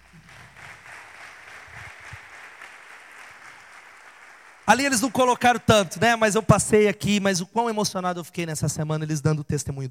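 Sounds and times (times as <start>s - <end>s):
audience applauding: 0.0s - 5.6s
speech: 4.7s - 9.8s.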